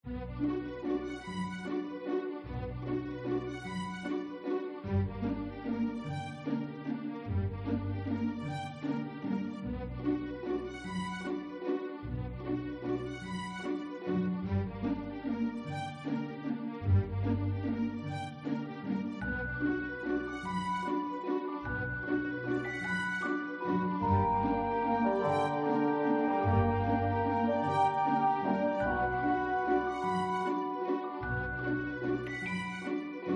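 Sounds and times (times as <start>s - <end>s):
music: 0.0s - 33.3s.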